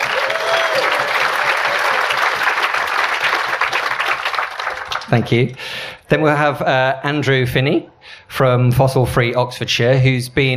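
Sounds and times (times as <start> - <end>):
audience applause: 0.0 - 5.6
speech: 5.1 - 10.5.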